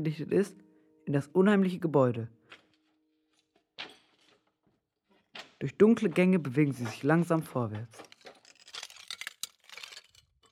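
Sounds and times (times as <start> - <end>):
speech: 0.0 - 2.6, 5.6 - 8.1
glass shards crunching and scraping underfoot on the floor: 7.8 - 10.5.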